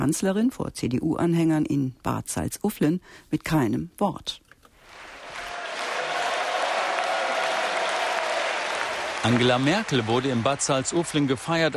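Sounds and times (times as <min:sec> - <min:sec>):
speech: 0:00.0 - 0:04.4, 0:09.2 - 0:11.7
large crowd applauding at political rally: 0:04.9 - 0:11.7.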